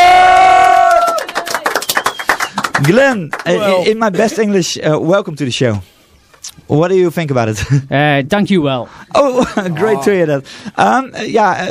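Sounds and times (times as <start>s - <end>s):
audience applauding: 0.2s - 4.1s
speech: 2.8s - 5.9s, 6.5s - 11.6s.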